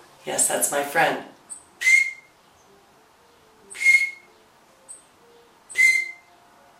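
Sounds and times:
speech: 0.2 - 1.4
bird chirps outside the window: 1.5 - 6.5
short bird peep: 3.7 - 4.3, 5.7 - 6.2.

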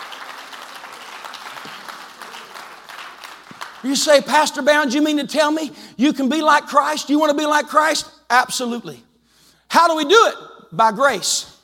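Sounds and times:
audience clapping hands: 0.0 - 4.4
speech: 3.8 - 9.1, 9.7 - 11.5.

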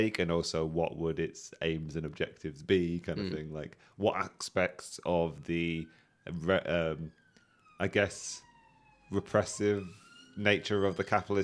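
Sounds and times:
speech: 0.0 - 7.2, 7.8 - 8.4, 9.1 - 11.4
ambulance siren passing outside: 3.4 - 11.4.

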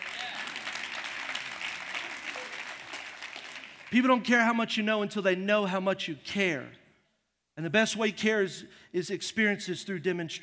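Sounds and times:
audience applause: 0.0 - 3.9
speech: 3.9 - 6.8, 7.6 - 10.4.

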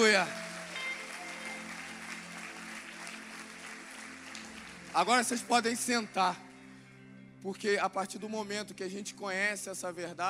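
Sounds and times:
speech: 0.0 - 0.4, 5.0 - 6.5, 7.4 - 10.2
audience applause: 0.0 - 6.2.

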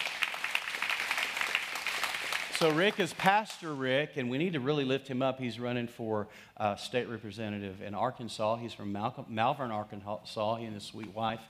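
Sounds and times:
audience hand clapping: 0.0 - 3.6
speech: 2.6 - 11.4.

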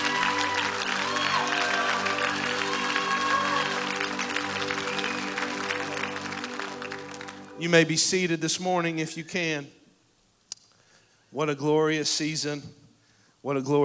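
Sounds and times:
voices cheering: 0.0 - 6.8
audience clapping hands: 0.0 - 7.6
speech: 7.6 - 9.8, 11.4 - 12.8, 13.4 - 13.8.

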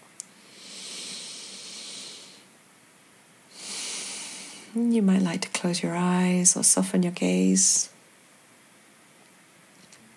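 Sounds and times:
deep breath during a guided body-awareness exercise: 0.3 - 2.5, 3.5 - 4.8
speech: 4.8 - 8.0.

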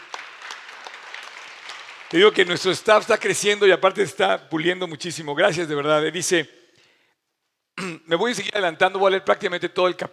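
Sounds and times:
audience applause: 0.0 - 3.3
speech: 2.1 - 6.6, 8.1 - 10.1.

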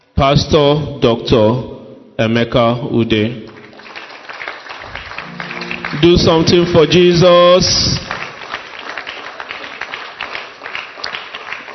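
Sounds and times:
speech: 0.2 - 3.5, 6.0 - 8.1
thin scattered audience clapping: 3.5 - 11.7.

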